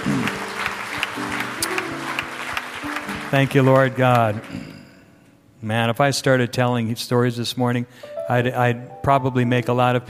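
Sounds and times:
church congregation clapping during a service: 0:00.0 - 0:05.0
speech: 0:03.3 - 0:04.7, 0:05.6 - 0:10.0.

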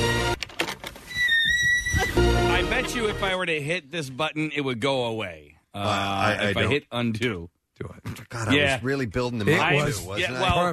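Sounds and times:
squeaky gate creaking: 0:01.0 - 0:02.4
speech: 0:02.8 - 0:10.7.

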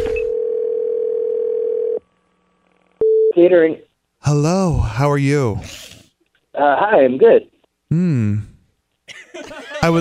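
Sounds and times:
telephone dial tone: 0:00.3 - 0:02.0
speech: 0:03.4 - 0:06.0, 0:06.6 - 0:08.5, 0:09.4 - 0:09.9.

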